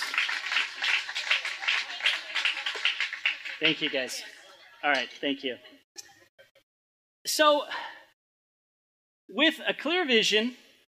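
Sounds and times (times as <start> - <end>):
audience applause: 0.0 - 4.2
speech: 3.6 - 5.8, 7.4 - 7.8, 9.3 - 10.6.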